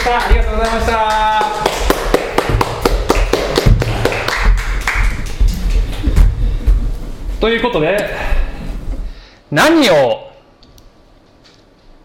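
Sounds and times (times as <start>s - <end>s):
audience applause: 0.0s - 6.0s
speech: 0.1s - 1.9s, 7.4s - 8.3s, 9.5s - 10.2s.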